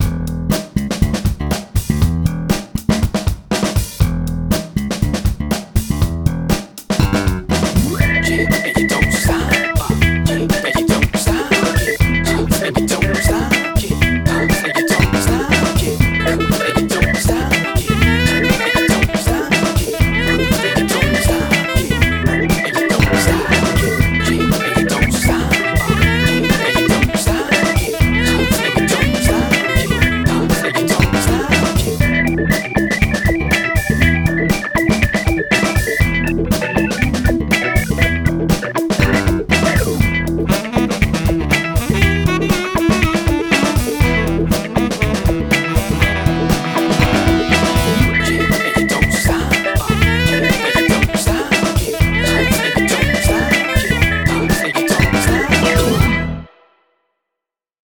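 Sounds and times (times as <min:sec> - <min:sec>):
funk rap music: 0:00.0 - 0:56.5.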